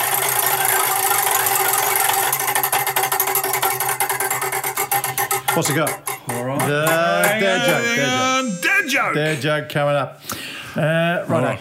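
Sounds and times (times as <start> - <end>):
prize wheel being spun, clicking: 0.0 - 9.2
speech: 5.6 - 11.5.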